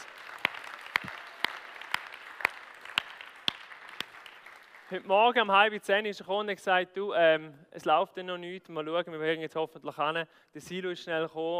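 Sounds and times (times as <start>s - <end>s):
audience applause: 0.0s - 5.1s
speech: 4.9s - 11.5s.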